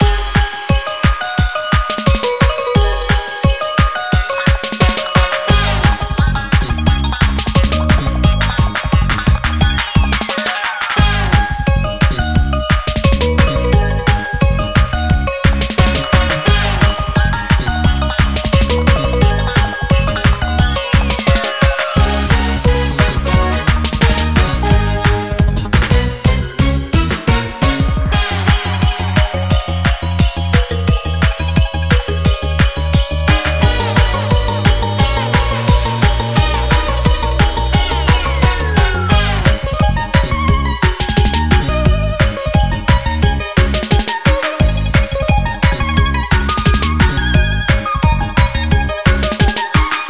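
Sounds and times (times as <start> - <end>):
game music loop: 0.0 - 50.0.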